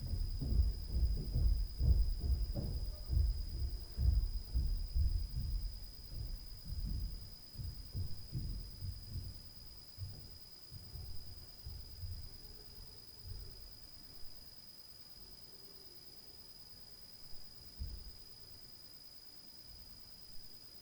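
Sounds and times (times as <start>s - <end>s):
night ambience: 0.0s - 14.0s.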